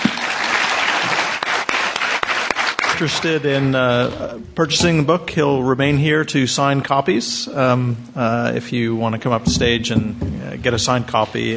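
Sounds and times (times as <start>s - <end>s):
audience clapping to thank an author: 0.0s - 3.7s
speech: 3.0s - 11.5s.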